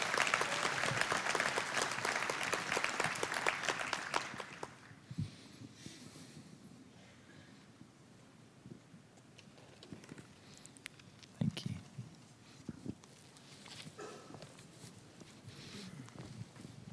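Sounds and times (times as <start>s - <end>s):
audience applauding and cheering: 0.0s - 4.9s.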